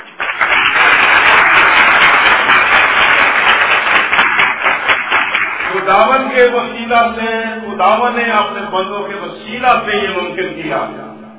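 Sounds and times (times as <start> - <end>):
crowd applause: 0.0 - 6.2
speech: 5.9 - 11.1.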